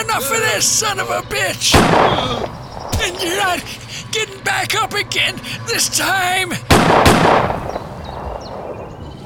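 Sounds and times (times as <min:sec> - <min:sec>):
speech: 0:00.2 - 0:07.6
gunshot from Pa's gun: 0:01.7 - 0:03.2, 0:06.7 - 0:07.8.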